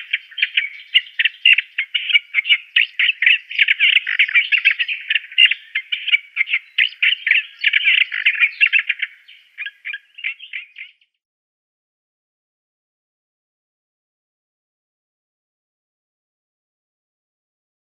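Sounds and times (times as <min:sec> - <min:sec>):
Olive-tree Warbler singing: 0:00.0 - 0:11.2.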